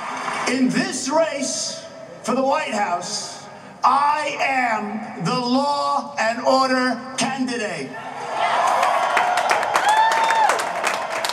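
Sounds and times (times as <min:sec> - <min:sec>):
rally crowd cheering: 0:00.0 - 0:00.5, 0:08.0 - 0:11.3
speech: 0:00.5 - 0:08.6
high rising and falling shouts: 0:08.0 - 0:11.0
whoops and claps: 0:08.4 - 0:11.3.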